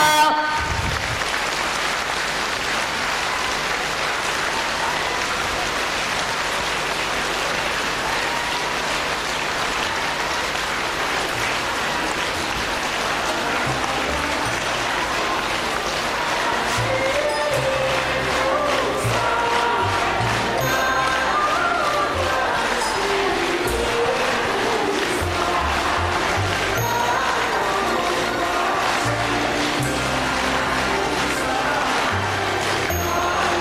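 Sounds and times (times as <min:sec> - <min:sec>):
audience applause: 0:00.0 - 0:33.5.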